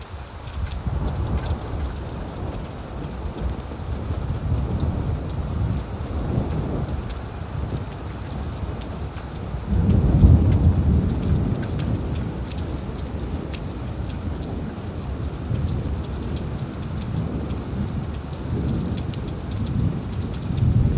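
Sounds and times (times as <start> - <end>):
rain: 0.0 - 20.9
thunder: 9.7 - 12.5, 19.6 - 20.9.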